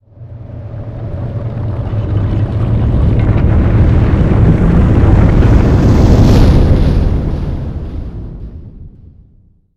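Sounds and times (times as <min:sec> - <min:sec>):
whoosh: 0:00.1 - 0:09.3.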